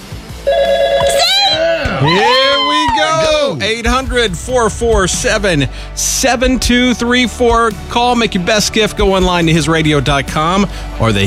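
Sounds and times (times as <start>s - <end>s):
electronic telephone ringing: 0.5s - 1.6s
speech: 2.0s - 2.4s, 3.0s - 11.2s.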